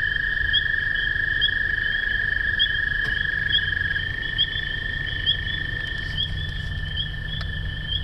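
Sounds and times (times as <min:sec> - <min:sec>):
spring peepers at midnight: 0:00.0 - 0:08.0.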